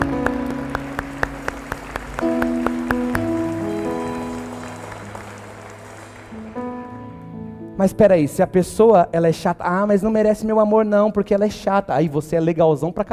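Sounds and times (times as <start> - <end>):
one person clapping hands alone: 0.0 - 6.7
speech: 7.8 - 13.1.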